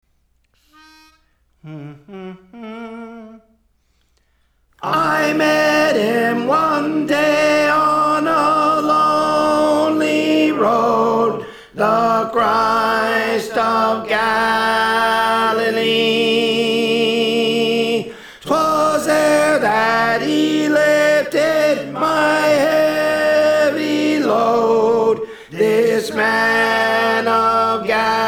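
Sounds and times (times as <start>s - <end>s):
tenor singing: 0.8s - 3.6s, 4.8s - 28.2s.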